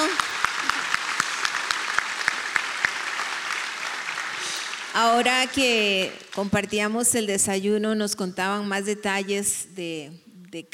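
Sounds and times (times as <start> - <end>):
applause: 0.0 - 6.7
speech: 5.0 - 10.7.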